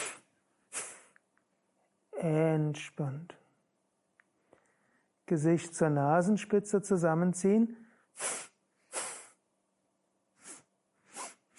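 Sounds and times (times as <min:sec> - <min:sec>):
forceful exhalations through the nose during a yoga power-breathing exercise: 0:00.0 - 0:01.2, 0:08.2 - 0:09.4, 0:10.4 - 0:11.5
speech: 0:02.2 - 0:03.4, 0:05.3 - 0:08.4.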